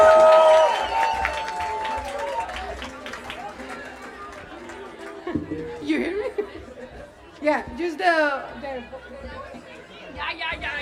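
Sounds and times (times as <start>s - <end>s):
audience applause: 0.0s - 5.8s.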